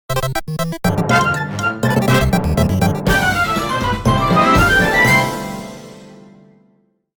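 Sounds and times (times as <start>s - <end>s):
victory theme music: 0.8s - 6.5s.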